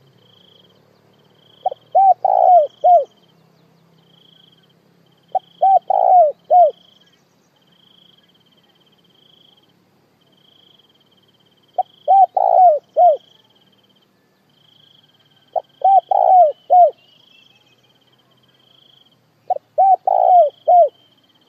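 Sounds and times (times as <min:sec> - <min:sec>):
spotted dove cooing: 0:01.6 - 0:03.2, 0:05.3 - 0:06.8, 0:11.8 - 0:13.5, 0:15.3 - 0:17.1, 0:19.5 - 0:21.0.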